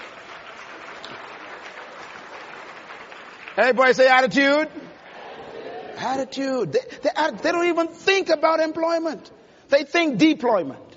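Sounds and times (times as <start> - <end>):
audience clapping: 0.0 - 4.7
speech: 3.6 - 4.8, 6.0 - 10.8.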